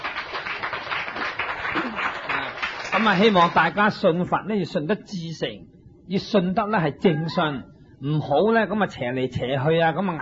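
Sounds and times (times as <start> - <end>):
audience applause at a Buddhist dharma talk: 0.0 - 3.8
speech: 3.0 - 10.1.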